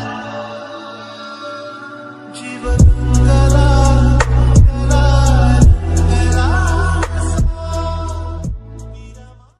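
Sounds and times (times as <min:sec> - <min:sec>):
Marathi ringtone background music: 0:02.6 - 0:09.2.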